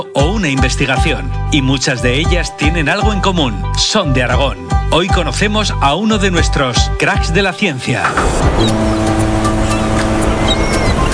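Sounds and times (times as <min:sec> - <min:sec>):
speech: 0:00.0 - 0:09.4
seaside ambience by the sea: 0:08.5 - 0:11.1.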